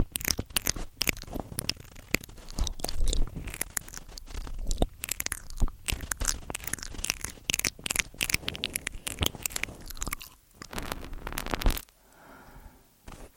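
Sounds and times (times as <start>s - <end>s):
crunching and wet chewing: 0.0s - 11.9s
faint soft hiss: 10.6s - 13.3s.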